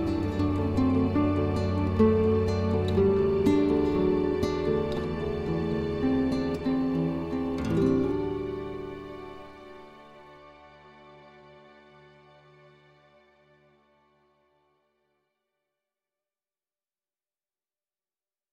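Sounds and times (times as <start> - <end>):
optimistic pastoral guitar music: 0.0 - 12.8.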